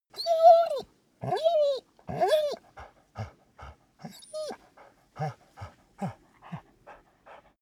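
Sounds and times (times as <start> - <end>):
dog whining: 0.2 - 2.6, 4.0 - 4.6
dog panting: 2.1 - 7.5.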